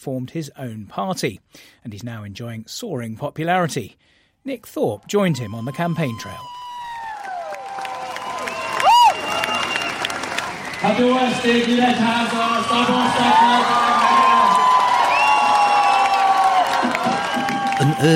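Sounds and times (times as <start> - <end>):
speech: 0.0 - 6.7, 10.8 - 14.1, 17.8 - 18.1
crowd cheering at campaign rally: 5.1 - 18.1.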